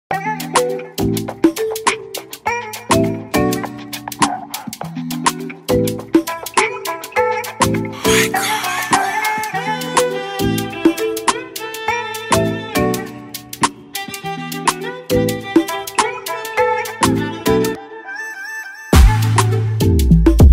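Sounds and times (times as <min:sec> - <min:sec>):
afrobeat instrumental music: 0:00.1 - 0:20.5.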